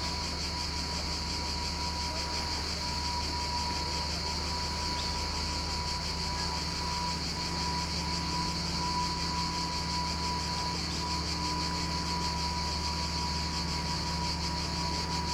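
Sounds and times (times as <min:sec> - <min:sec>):
cicadas buzzing at Vourvourou Sithonia Greece: 0:00.0 - 0:15.3.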